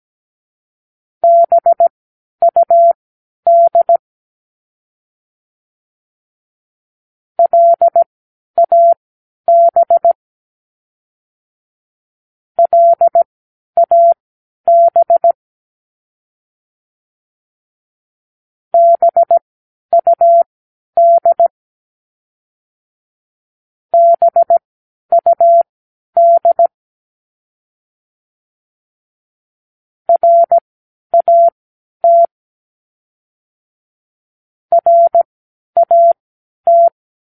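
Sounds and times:
morse code practice words: 0:01.2 - 0:04.0, 0:07.4 - 0:10.2, 0:12.6 - 0:13.2, 0:13.8 - 0:15.4, 0:18.8 - 0:19.4, 0:20.0 - 0:21.5, 0:24.0 - 0:26.7, 0:30.1 - 0:30.6, 0:31.2 - 0:32.3, 0:34.7 - 0:37.0.

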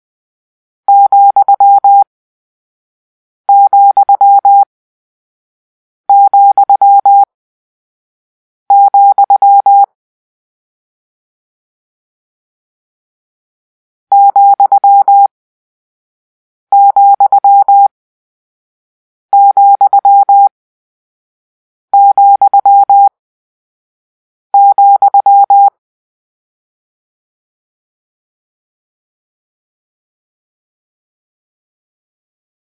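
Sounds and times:
morse code tones for a comma: 0:00.9 - 0:02.0, 0:03.5 - 0:04.6, 0:06.1 - 0:07.3, 0:08.7 - 0:09.9, 0:14.1 - 0:15.3, 0:16.7 - 0:17.9, 0:19.4 - 0:20.5, 0:22.0 - 0:23.1, 0:24.6 - 0:25.7.

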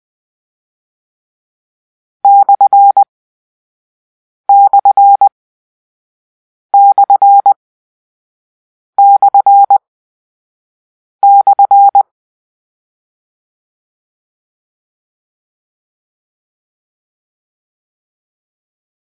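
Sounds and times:
morse code: 0:02.3 - 0:03.0, 0:04.5 - 0:05.3, 0:06.8 - 0:07.6, 0:09.0 - 0:09.8, 0:11.2 - 0:12.0.

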